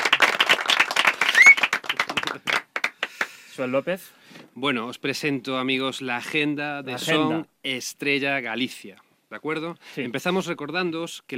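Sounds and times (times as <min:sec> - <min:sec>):
clapping: 0:00.0 - 0:03.3
speech: 0:03.6 - 0:11.3.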